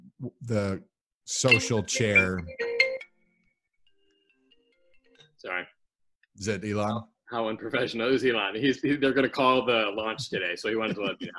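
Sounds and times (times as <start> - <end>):
speech: 0.2 - 2.7, 5.4 - 5.8, 6.4 - 11.3
electronic phone ringtone: 1.5 - 3.4.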